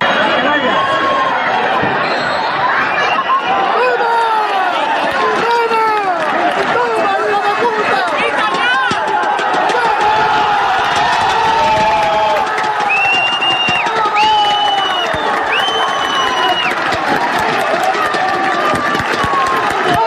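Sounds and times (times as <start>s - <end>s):
football stadium crowd cheering: 0.0s - 20.0s
referee whistle blasts at final whistle: 2.0s - 3.4s, 12.8s - 16.8s.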